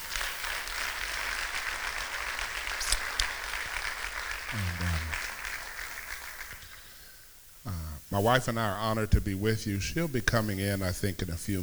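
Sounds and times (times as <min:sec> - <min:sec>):
audience applause, hand clapping: 0:00.0 - 0:07.0
speech: 0:08.1 - 0:11.6.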